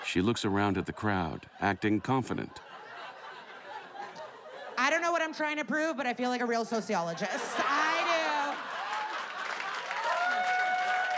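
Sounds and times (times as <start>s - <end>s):
speech: 0.1s - 2.7s, 5.3s - 7.8s
laughter: 0.6s - 4.8s, 7.2s - 10.3s
group sitting on a sofa clapping: 7.9s - 11.1s.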